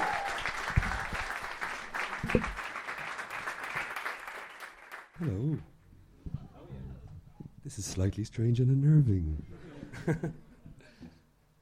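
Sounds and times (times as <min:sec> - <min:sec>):
soft applause from a gig crowd welcoming a band: 0:00.0 - 0:05.5
speech: 0:02.3 - 0:02.6, 0:05.2 - 0:05.7, 0:07.8 - 0:10.4
laughter: 0:09.5 - 0:10.9.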